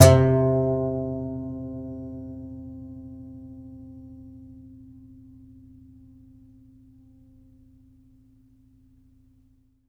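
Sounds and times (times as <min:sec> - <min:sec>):
contrabass balalaika plucked strings: 0:00.0 - 0:02.9.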